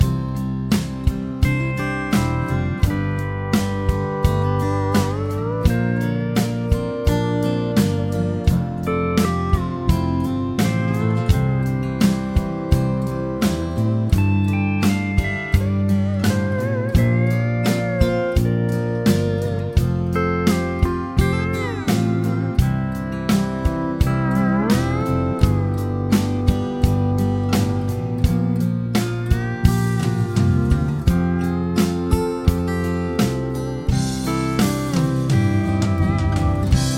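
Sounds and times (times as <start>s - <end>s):
chord progression with mixture: 0.0s - 36.9s.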